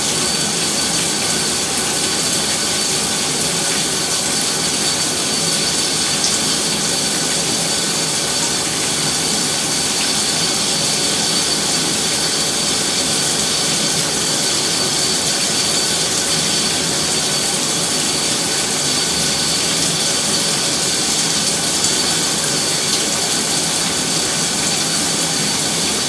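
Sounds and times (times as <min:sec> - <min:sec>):
shower running: 0:00.0 - 0:26.0.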